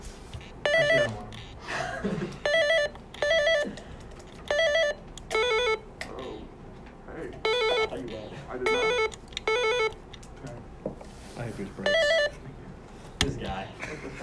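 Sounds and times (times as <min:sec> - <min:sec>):
quiz game buzzer beeps: 0:00.4 - 0:01.7, 0:02.4 - 0:03.8, 0:04.4 - 0:06.5, 0:07.4 - 0:10.0, 0:11.8 - 0:12.4
people laughing: 0:01.6 - 0:02.4, 0:13.8 - 0:14.2.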